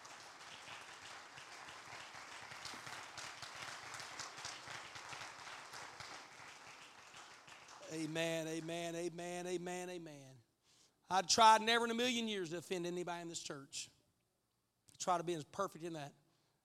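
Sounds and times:
audience clapping hands: 0.0s - 9.0s
speech: 7.9s - 10.4s, 11.1s - 14.0s, 15.0s - 16.2s.

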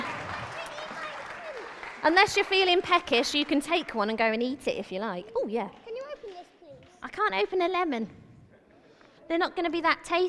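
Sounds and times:
audience applause: 0.0s - 3.9s
speech: 2.0s - 5.8s, 7.0s - 8.2s, 9.3s - 10.2s.

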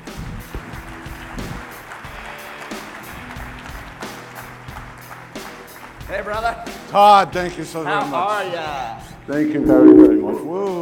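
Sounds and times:
audience applause: 0.8s - 6.3s
speech: 6.1s - 10.7s.

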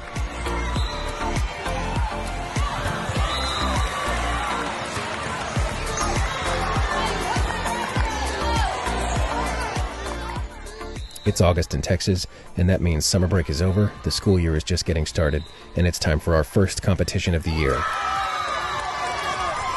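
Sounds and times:
crowd cheering at Spikedown 2022 Texas school volleyball tournament: 0.0s - 11.4s, 17.3s - 19.7s
speech: 11.3s - 18.2s.

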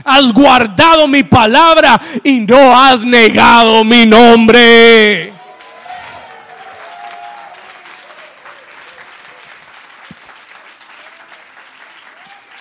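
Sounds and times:
speech: 0.0s - 5.3s
audience applause: 5.4s - 12.5s.

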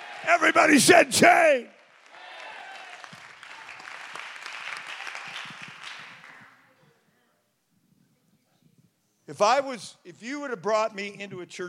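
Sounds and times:
audience clapping: 0.0s - 6.6s
speech: 0.2s - 1.8s, 9.3s - 11.6s.

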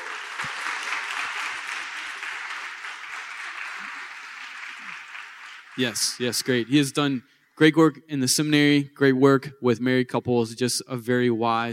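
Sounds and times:
audience clapping: 0.0s - 7.2s
speech: 5.8s - 11.7s.

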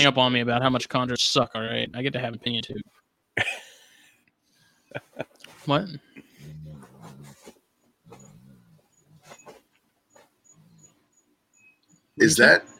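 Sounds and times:
speech: 0.0s - 3.6s, 4.9s - 6.1s, 12.2s - 12.7s
dog making noise at bedtime: 6.4s - 10.9s.

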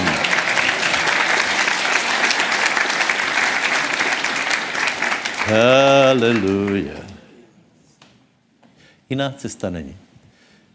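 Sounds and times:
audience applause: 0.0s - 7.2s
speech: 5.5s - 7.0s, 9.1s - 10.0s.

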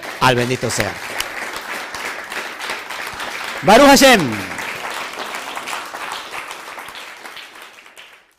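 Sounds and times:
audience applause: 0.0s - 8.3s
speech: 0.2s - 1.2s, 3.6s - 4.5s.

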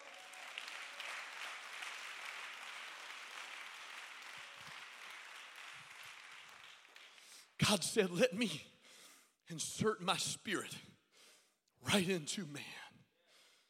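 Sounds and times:
audience clapping hands: 0.0s - 7.6s
speech: 7.7s - 8.7s, 9.5s - 10.9s, 11.8s - 12.8s.

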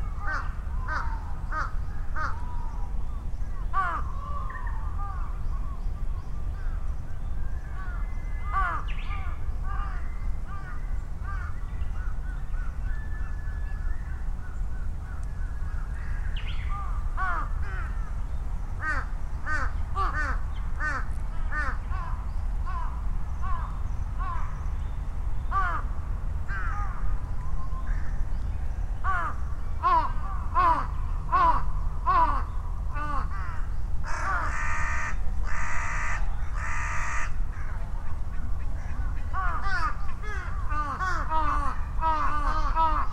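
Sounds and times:
low traffic rumble: 0.0s - 43.1s
crows cawing: 0.2s - 2.6s, 3.7s - 5.4s, 7.8s - 11.6s, 15.1s - 18.2s, 18.8s - 24.6s, 25.5s - 27.2s, 29.0s - 43.1s.

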